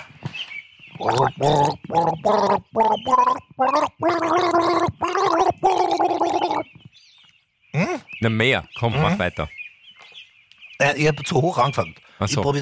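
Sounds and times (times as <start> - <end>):
speech: 1.0 - 4.9, 8.2 - 9.6, 10.8 - 12.6
man gargling flower water as a melody: 1.0 - 6.7.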